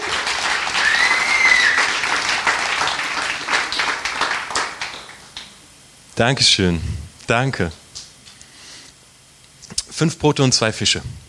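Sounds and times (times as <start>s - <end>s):
crowd applause: 0.0s - 5.6s
whistles: 0.8s - 2.0s
speech: 6.2s - 7.8s, 10.0s - 11.2s.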